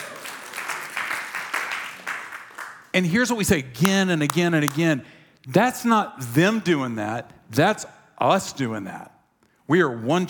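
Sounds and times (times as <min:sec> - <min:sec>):
audience applause: 0:00.0 - 0:02.9
speech: 0:03.0 - 0:09.1, 0:09.7 - 0:10.2.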